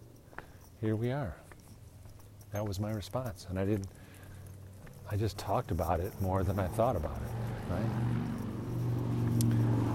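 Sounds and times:
speech: 0.8 - 1.4, 2.5 - 4.0, 5.1 - 8.4
bicycle passing by: 4.0 - 9.9
motorcycle passing by: 6.2 - 9.9.

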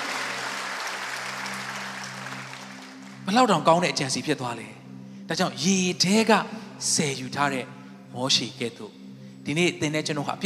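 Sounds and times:
church congregation clapping during a Sunday sermon: 0.0 - 3.3
speech: 3.3 - 10.4.

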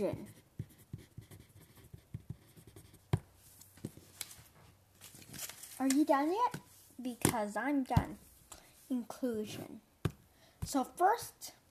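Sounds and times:
speech: 0.0 - 0.4, 5.8 - 8.3, 8.9 - 9.9, 10.7 - 11.6
pencil writing on a sheet of paper: 0.0 - 3.4
light pencil taps on paper: 0.0 - 4.0, 5.9 - 8.2, 10.0 - 10.8.

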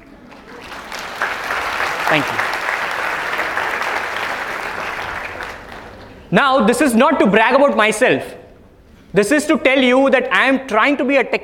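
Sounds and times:
audience applause: 0.0 - 6.3
speech: 2.1 - 2.5, 6.3 - 8.4, 9.1 - 11.4.

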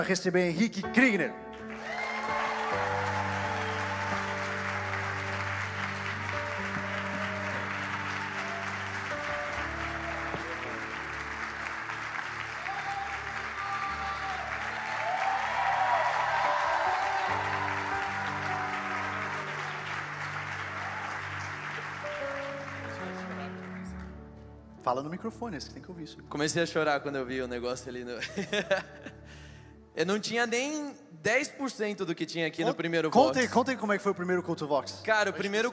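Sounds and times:
speech: 0.0 - 2.0, 24.9 - 29.1, 30.0 - 35.7
audience applauding and cheering: 1.4 - 24.6
laughter: 28.2 - 29.3.

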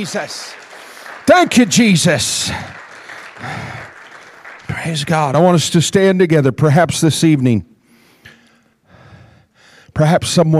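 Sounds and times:
speech: 0.0 - 0.6, 1.3 - 2.8, 3.4 - 3.9, 4.7 - 7.7, 10.0 - 10.5
audience hand clapping: 0.0 - 6.0.

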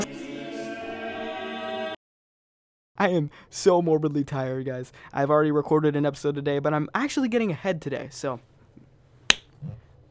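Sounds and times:
speech: 3.0 - 8.5
finger snap as a high-five sound effect: 9.3 - 9.5.

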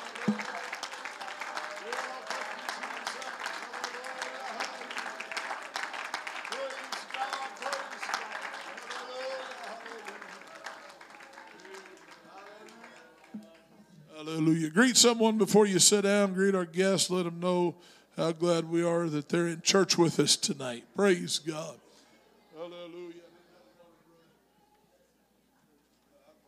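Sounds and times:
voices cheering: 0.0 - 13.3
audience clapping: 0.0 - 13.9
speech: 14.7 - 21.8.

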